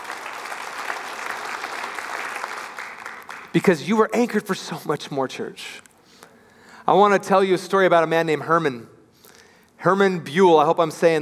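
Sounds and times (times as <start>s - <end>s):
large crowd applause: 0.0s - 3.6s
speech: 3.6s - 5.8s, 6.9s - 8.9s, 9.8s - 11.2s.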